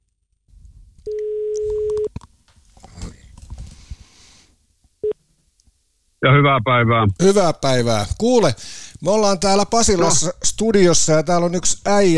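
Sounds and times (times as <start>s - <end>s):
telephone tone of a call over a phone line: 1.1s - 2.1s
speech: 6.2s - 12.1s.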